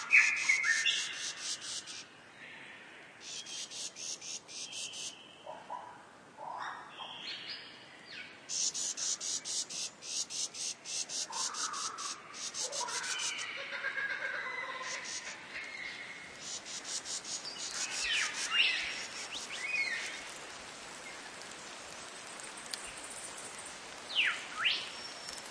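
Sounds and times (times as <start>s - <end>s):
tall forest ambience: 0.0s - 25.4s.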